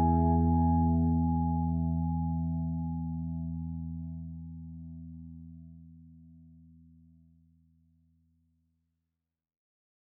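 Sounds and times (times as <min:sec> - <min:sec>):
analog tube bucket-brigade delay echo effect: 0:00.0 - 0:02.9.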